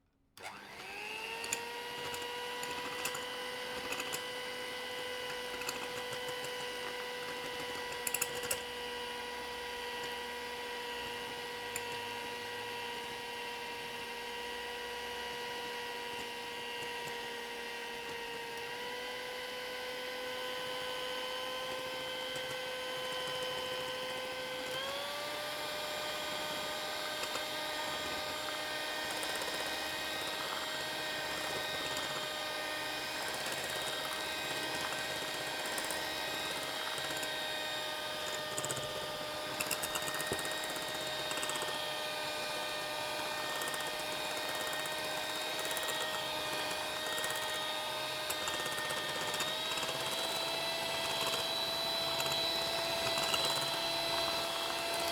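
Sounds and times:
kitchen mixer running: 0:00.4 - 0:55.1.

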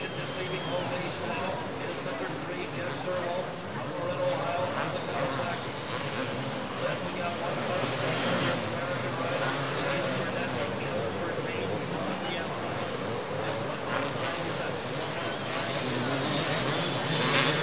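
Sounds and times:
motocross motorcycles riding on the track: 0:00.0 - 0:17.6.

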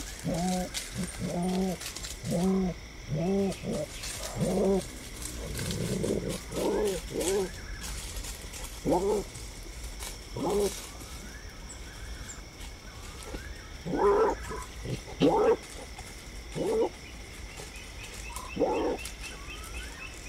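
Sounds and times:
mongoose: 0:00.0 - 0:09.4, 0:13.2 - 0:15.9, 0:17.6 - 0:20.2.

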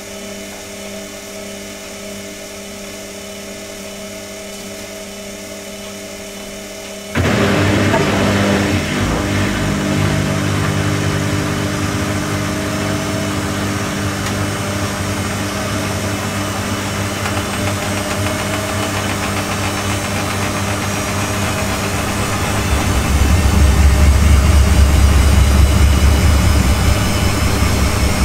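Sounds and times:
washing machine washing laundry: 0:07.2 - 0:28.2.

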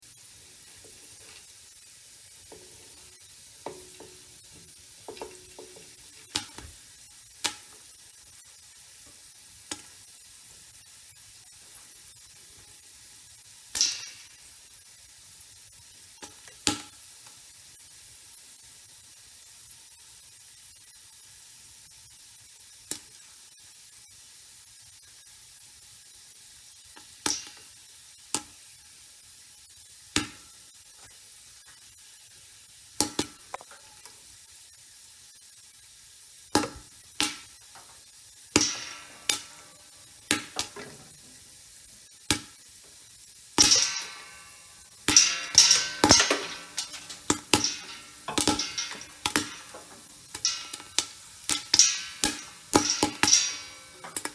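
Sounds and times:
pop: 0:02.4 - 0:07.9, 0:09.0 - 0:10.0, 0:13.7 - 0:14.4, 0:16.2 - 0:17.0, 0:22.8 - 0:23.2, 0:27.0 - 0:27.7, 0:28.3 - 0:28.6, 0:30.1 - 0:31.2, 0:33.0 - 0:34.2, 0:36.4 - 0:41.2, 0:42.1 - 0:54.3.

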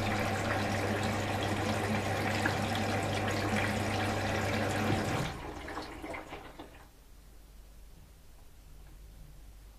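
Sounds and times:
washing machine filling with water: 0:00.0 - 0:06.9.

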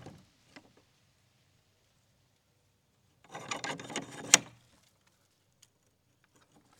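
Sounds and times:
prison door bolt sliding: 0:03.3 - 0:04.6.

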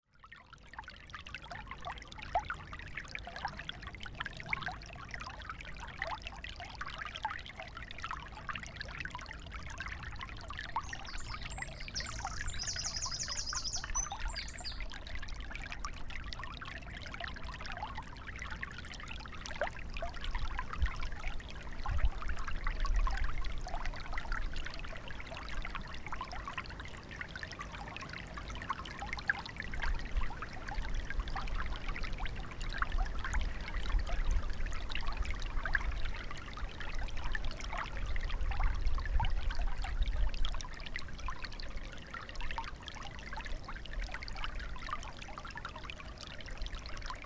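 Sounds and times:
small stream flowing: 0:00.0 - 0:47.2.

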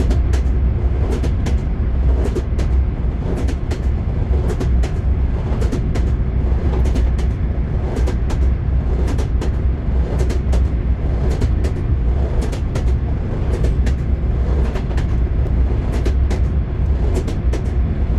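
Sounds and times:
train wheels knocking: 0:00.0 - 0:18.1.

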